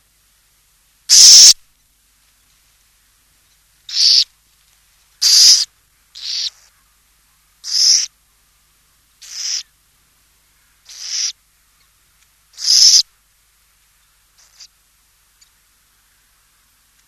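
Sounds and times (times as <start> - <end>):
burrowing owl giving harsh hissing rasps: 1.1 - 1.6, 3.9 - 4.3, 5.2 - 6.8, 7.6 - 8.2, 9.2 - 9.7, 10.6 - 11.4, 12.5 - 13.1, 14.4 - 14.8.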